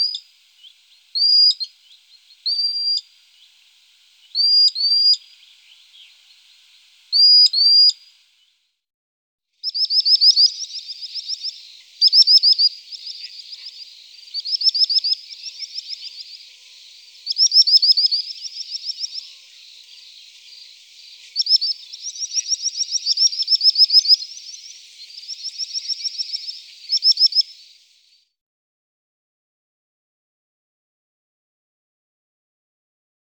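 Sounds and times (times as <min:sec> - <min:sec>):
sandpiper calls: 0:00.0 - 0:08.1, 0:09.6 - 0:28.0.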